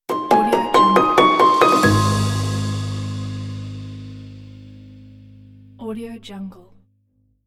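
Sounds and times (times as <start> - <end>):
uplifting piano logo: 0.1 - 5.7.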